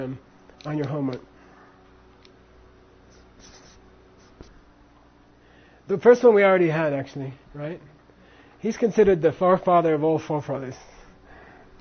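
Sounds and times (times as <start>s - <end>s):
speech: 0.0s - 1.3s, 5.9s - 8.0s, 8.6s - 10.9s
pen strokes handwriting names in English: 3.1s - 4.5s.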